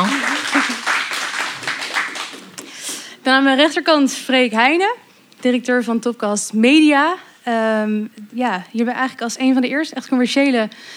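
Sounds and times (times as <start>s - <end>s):
audience applause: 0.0s - 2.6s
speech: 3.3s - 10.9s.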